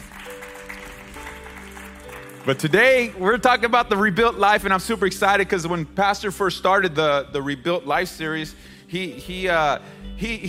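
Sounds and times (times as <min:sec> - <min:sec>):
audience round of applause: 0:00.0 - 0:03.2
speech: 0:02.4 - 0:10.4.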